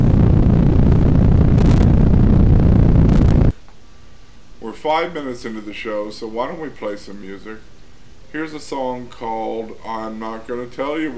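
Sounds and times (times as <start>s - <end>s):
rocket engines at liftoff: 0.0s - 3.5s
speech: 4.8s - 11.1s.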